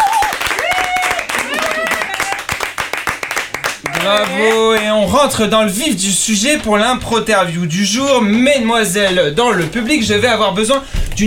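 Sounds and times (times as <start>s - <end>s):
high-pitched cheers: 0.0s - 2.6s, 3.8s - 4.9s
live audience applause: 0.0s - 5.1s
speech: 4.1s - 11.2s.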